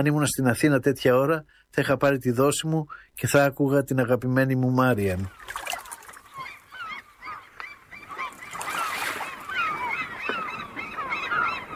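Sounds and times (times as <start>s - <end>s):
speech: 0.0s - 5.7s
wash: 2.9s - 11.7s
flock of seagulls calling at a harbour: 5.1s - 11.7s.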